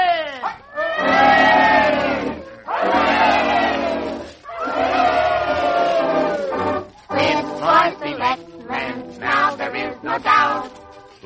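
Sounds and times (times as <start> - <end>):
excited overlapping shouts and chatter: 0.0 - 7.5
crowd giving three cheers: 0.0 - 10.6.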